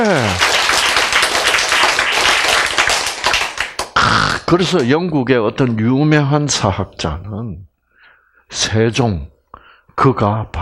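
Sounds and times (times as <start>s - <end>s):
audience applause: 0.0s - 4.0s
speech: 4.5s - 7.7s, 8.5s - 9.3s, 10.0s - 10.5s.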